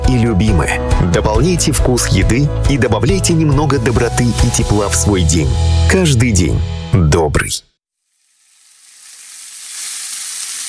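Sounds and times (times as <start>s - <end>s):
speech: 0.1s - 7.7s
meat sizzling on a grill: 8.0s - 10.6s.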